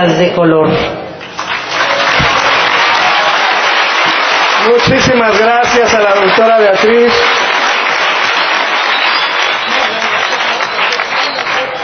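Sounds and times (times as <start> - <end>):
speech: 0.0 - 1.0, 4.6 - 7.4
audience applause: 1.2 - 11.8.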